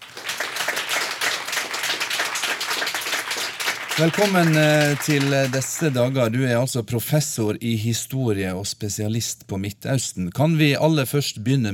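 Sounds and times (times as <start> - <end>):
audience clapping: 0.0 - 6.4
speech: 4.0 - 11.7.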